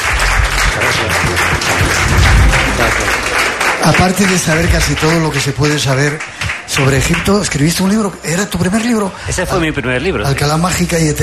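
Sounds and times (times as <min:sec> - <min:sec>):
audience applause: 0:00.0 - 0:07.7
speech: 0:03.9 - 0:11.2.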